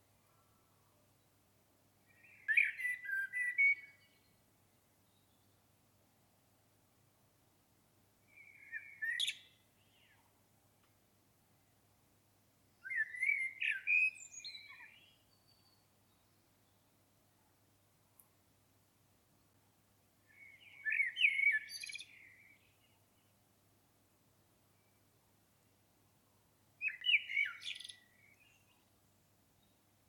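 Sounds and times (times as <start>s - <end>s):
common blackbird singing: 2.1s - 4.4s, 8.3s - 10.2s, 12.8s - 17.0s, 20.3s - 23.0s, 26.8s - 28.9s.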